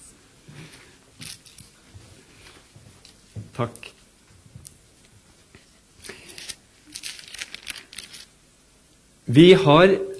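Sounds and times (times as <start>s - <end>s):
speech: 3.6s - 3.9s, 9.3s - 10.1s
paper script pages being handled: 6.1s - 8.3s.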